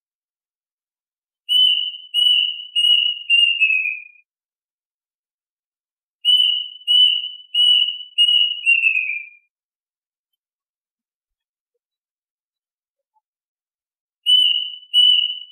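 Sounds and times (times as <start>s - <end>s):
duck whistled calls: 1.5s - 4.1s, 6.3s - 9.4s, 14.3s - 15.5s.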